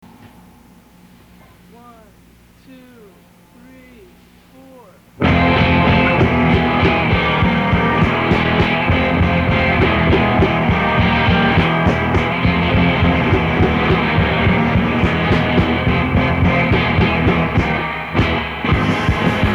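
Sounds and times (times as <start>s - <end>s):
instrumental music: 5.2s - 19.5s.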